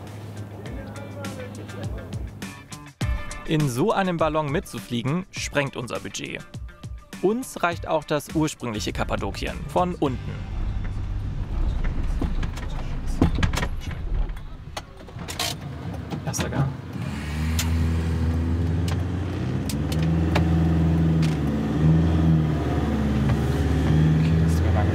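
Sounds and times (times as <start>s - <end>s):
speech: 3.5s - 6.6s, 7.2s - 10.5s
car engine whining while driving in first gear: 9.6s - 24.9s.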